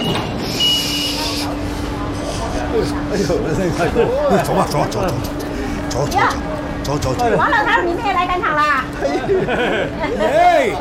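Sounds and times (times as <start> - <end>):
bus door opening at a stop with pneumatic hiss: 0.3 - 2.4
laughter: 2.5 - 7.8, 8.9 - 10.7
speech: 2.8 - 5.4, 6.0 - 10.7.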